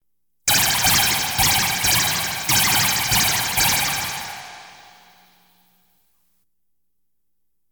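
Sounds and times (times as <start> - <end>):
science fiction effects: 0.5 - 5.2
light beam sounds: 0.5 - 5.3
laser shots: 0.5 - 5.4.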